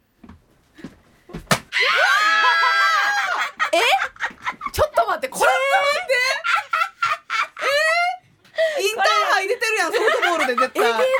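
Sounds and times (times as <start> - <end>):
windmill-style arm swing slaps on the buttocks in a penalty game: 1.3 - 1.7
loud sustained wavering scream: 1.7 - 3.4
laughter: 1.9 - 8.2, 9.0 - 11.1.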